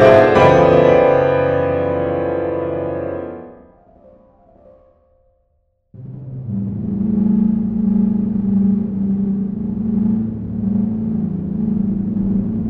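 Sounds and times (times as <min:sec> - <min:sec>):
electronic ensemble music: 0:00.0 - 0:03.5, 0:06.0 - 0:12.6
piano: 0:00.0 - 0:12.6.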